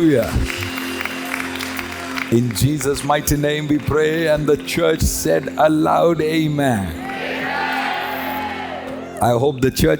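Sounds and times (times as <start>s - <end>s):
speech: 0.0s - 0.8s, 2.3s - 7.1s, 9.2s - 9.9s
audience clapping: 0.0s - 5.9s, 6.8s - 7.8s.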